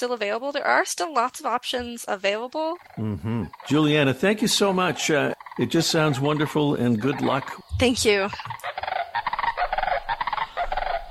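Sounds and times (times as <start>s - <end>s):
speech: 0.0s - 8.9s
Sandhill Crane calls: 2.9s - 11.1s.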